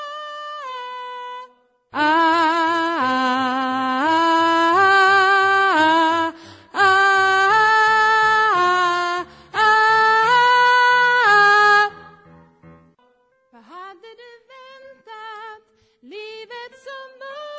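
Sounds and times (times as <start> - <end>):
alto vocal parts: 0.0 - 12.4.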